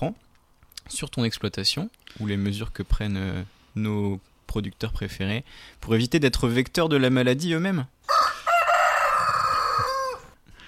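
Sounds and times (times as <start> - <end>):
speech: 0.0 - 0.2, 0.9 - 8.0
healthy farm rooster crowing: 8.0 - 10.4.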